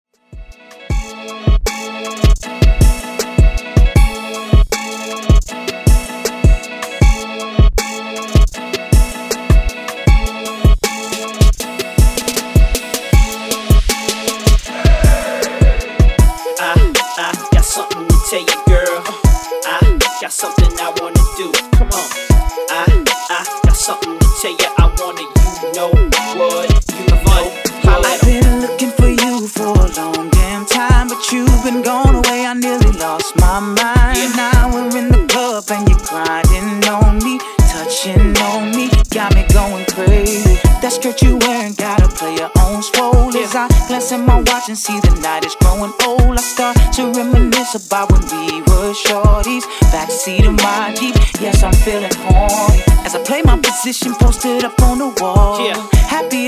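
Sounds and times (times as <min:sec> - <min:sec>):
old school beat at 157 BPM: 0:00.4 - 0:56.4.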